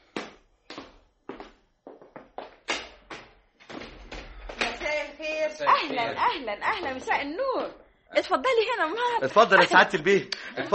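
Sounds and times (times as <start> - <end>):
sharp hard footsteps of someone going to open the door for arriving guests: 0.0 - 5.3, 6.1 - 7.9
speech: 5.5 - 10.7.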